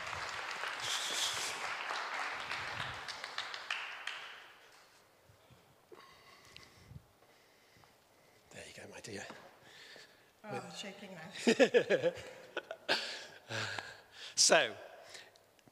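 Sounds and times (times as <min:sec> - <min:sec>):
audience applause: 0:00.0 - 0:04.6
speech: 0:09.0 - 0:09.4, 0:10.4 - 0:12.4, 0:14.5 - 0:14.9
laughter: 0:11.4 - 0:13.2.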